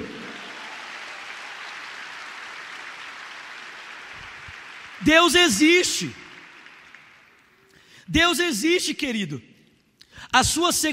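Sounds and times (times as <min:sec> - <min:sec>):
crowd clapping: 0:00.0 - 0:08.0
speech: 0:05.0 - 0:06.2, 0:08.1 - 0:09.5, 0:10.3 - 0:10.9.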